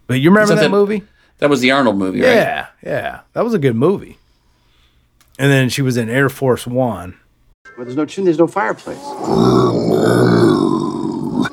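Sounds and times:
speech: 0.1 - 4.2, 5.4 - 11.5
growling: 2.2 - 3.2, 9.0 - 11.5.

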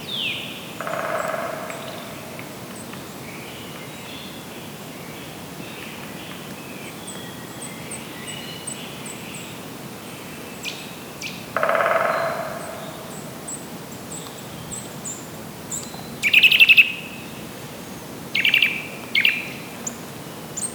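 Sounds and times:
woodpeckers in the distance chirping: 0.2 - 4.1, 10.6 - 17.1, 18.3 - 20.7.

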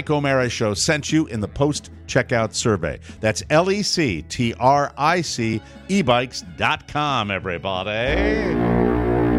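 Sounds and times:
speech: 0.0 - 8.6
man humming a tune: 8.1 - 9.2.

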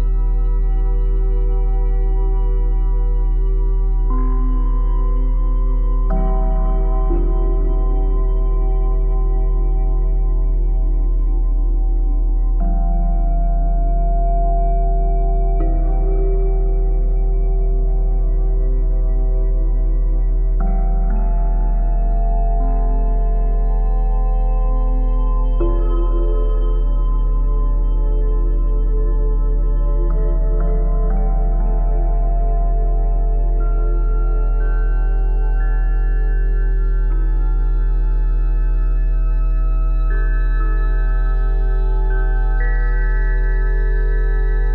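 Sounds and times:
layered sustained tones at 174Hz, 417Hz and 741Hz: 0.0 - 44.7.

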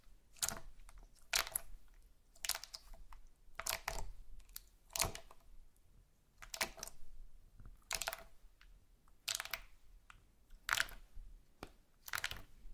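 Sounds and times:
slime squished and stretched with wet pops: 0.3 - 5.5, 6.4 - 7.1, 9.2 - 9.8, 10.5 - 12.7.

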